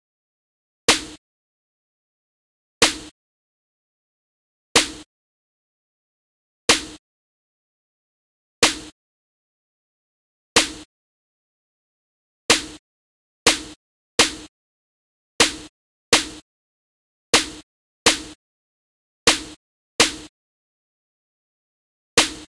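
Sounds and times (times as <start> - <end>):
snare noise: 0.9 - 1.2, 2.8 - 3.1, 4.8 - 5.1, 6.7 - 7.0, 8.6 - 9.0, 10.6 - 10.9, 12.5 - 12.8, 13.5 - 14.5, 15.4 - 16.4, 17.4 - 18.4, 19.3 - 20.3, 22.2 - 22.4.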